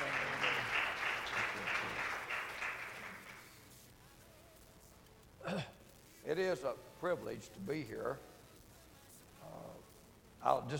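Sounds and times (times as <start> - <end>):
crowd applause: 0.0 - 3.6
speech: 5.5 - 8.3, 10.4 - 10.7.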